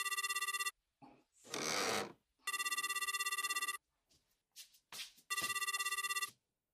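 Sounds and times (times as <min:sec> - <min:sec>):
telephone bell ringing: 0:00.0 - 0:00.8, 0:02.5 - 0:03.8, 0:05.3 - 0:06.4.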